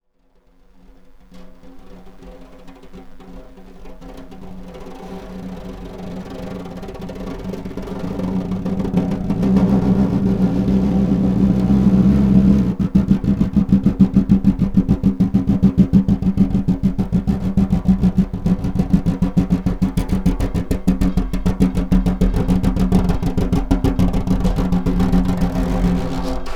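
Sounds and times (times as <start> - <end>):
snare drum: 5.9 - 26.5.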